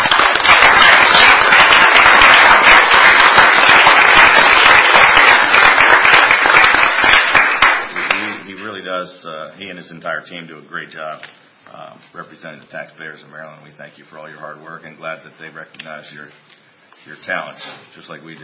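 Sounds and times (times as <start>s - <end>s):
crowd applauding: 0.0s - 8.4s
speech: 9.6s - 18.4s.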